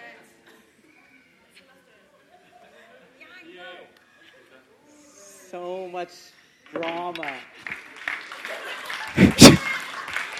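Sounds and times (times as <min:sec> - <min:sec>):
speech: 0:05.5 - 0:07.6
audience clapping: 0:06.7 - 0:10.3.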